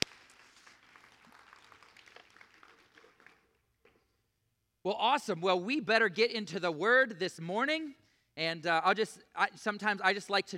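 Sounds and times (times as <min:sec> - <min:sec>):
round of applause: 0:00.0 - 0:04.0
speech: 0:04.9 - 0:10.5.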